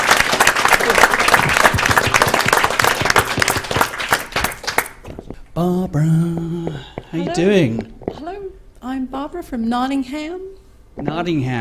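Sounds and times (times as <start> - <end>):
audience applause: 0.0 - 5.1
speech: 5.6 - 8.0, 8.8 - 11.5.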